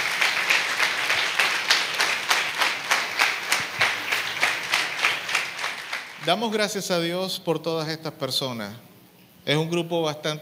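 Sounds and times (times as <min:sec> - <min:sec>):
audience clapping: 0:00.0 - 0:06.5
speech: 0:06.3 - 0:08.9, 0:09.5 - 0:10.3.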